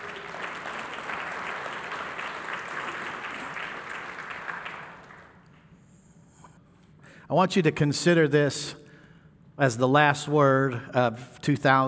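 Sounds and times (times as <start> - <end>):
audience applause: 0.0 - 5.4
speech: 7.3 - 8.8, 9.6 - 11.8.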